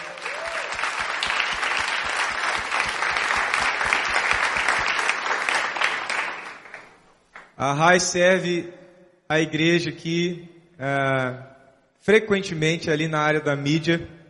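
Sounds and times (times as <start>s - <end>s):
audience applause: 0.0s - 7.0s
speech: 7.6s - 14.2s.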